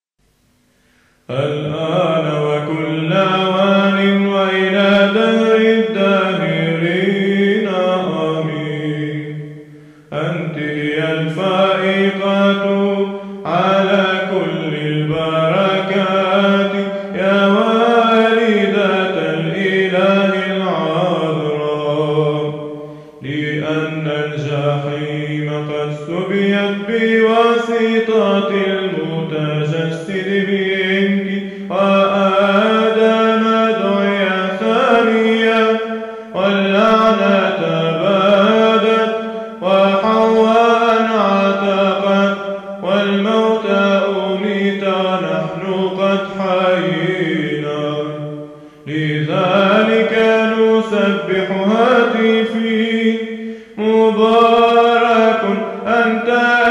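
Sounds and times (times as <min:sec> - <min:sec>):
hymn in tone six before the doxology: 0:00.2 - 0:56.6.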